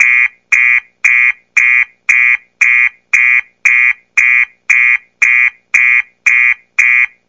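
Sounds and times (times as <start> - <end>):
car alarm: 0.0 - 7.2.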